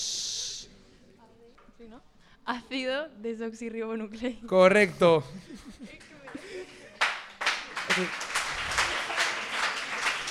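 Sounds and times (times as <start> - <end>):
speech: 1.8 - 6.8, 8.0 - 8.3
applause: 6.0 - 10.2.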